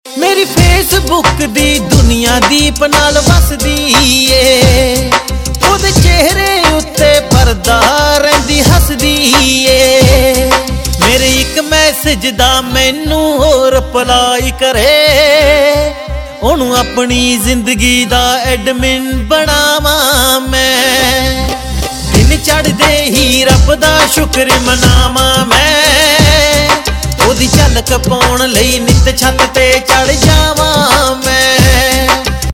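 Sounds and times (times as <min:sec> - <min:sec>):
Punjabi pop ringtone: 0:00.2 - 0:32.5.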